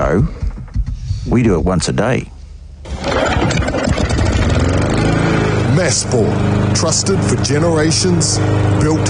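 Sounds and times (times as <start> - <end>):
speech: 0.1 - 0.4, 1.3 - 2.3, 2.9 - 3.5, 5.8 - 9.0
lawn mower engine starting and running: 2.8 - 9.0.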